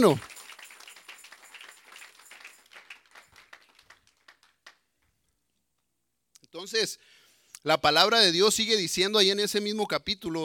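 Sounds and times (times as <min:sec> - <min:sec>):
speech: 0:00.0 - 0:00.3, 0:06.6 - 0:10.4
children applauding: 0:00.0 - 0:04.8.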